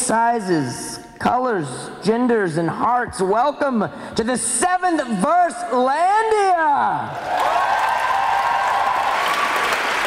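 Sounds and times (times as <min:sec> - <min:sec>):
speech: 0:00.1 - 0:07.6
audience applause: 0:07.2 - 0:10.0.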